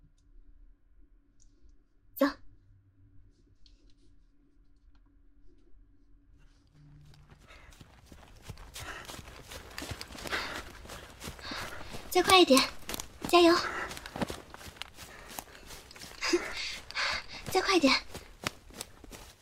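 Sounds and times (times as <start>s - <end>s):
running footsteps as a jog begins: 6.8s - 19.4s
speech: 12.2s - 13.8s, 17.7s - 18.1s.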